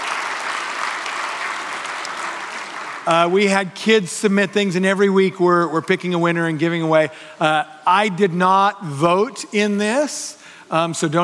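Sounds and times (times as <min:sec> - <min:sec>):
audience clapping: 0:00.0 - 0:03.6
speech: 0:03.1 - 0:11.2.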